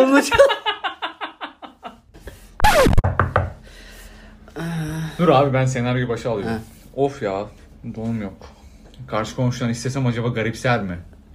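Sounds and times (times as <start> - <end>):
speech: 0.2 - 0.7, 5.2 - 11.3
knuckles knocking on an apartment door: 3.0 - 3.6.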